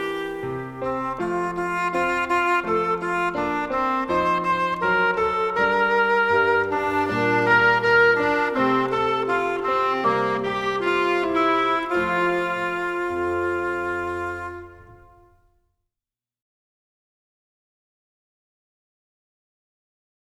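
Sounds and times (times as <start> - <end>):
music: 0.0 - 15.8.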